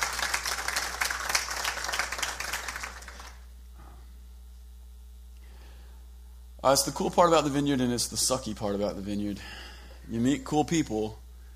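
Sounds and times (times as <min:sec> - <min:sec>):
audience applause: 0:00.0 - 0:03.5
speech: 0:06.6 - 0:11.2.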